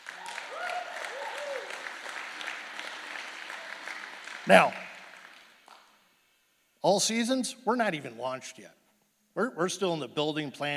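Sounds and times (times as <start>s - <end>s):
audience applause: 0.0s - 5.9s
speech: 4.5s - 4.8s, 6.8s - 8.8s, 9.4s - 10.7s.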